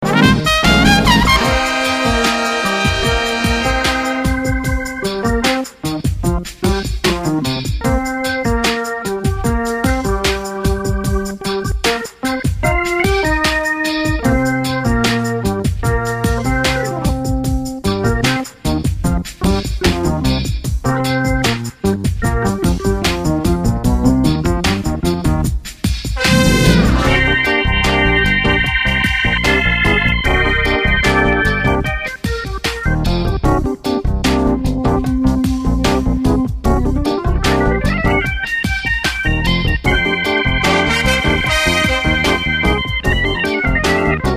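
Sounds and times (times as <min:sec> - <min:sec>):
funk music: 0:00.0 - 0:25.5, 0:26.1 - 0:44.3.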